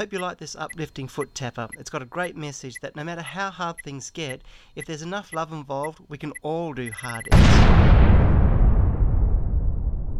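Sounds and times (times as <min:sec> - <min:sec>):
speech: 0:00.0 - 0:08.3
explosion effect from an uplifting foot-tapping song: 0:07.3 - 0:10.1.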